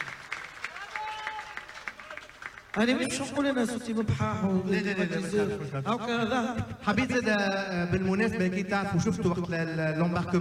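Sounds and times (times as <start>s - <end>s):
audience clapping rhythmically for a ship's crew: 0.0s - 3.4s
speech: 2.8s - 10.4s.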